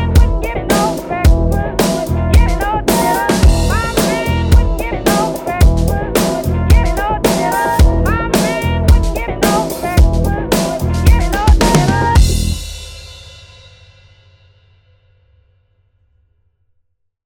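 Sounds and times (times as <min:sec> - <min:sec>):
electro music: 0:00.0 - 0:12.6.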